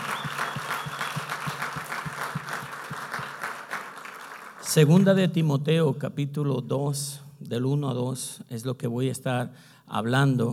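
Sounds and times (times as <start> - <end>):
rhythmic audience clapping: 0.0 - 5.2
speech: 4.7 - 10.5.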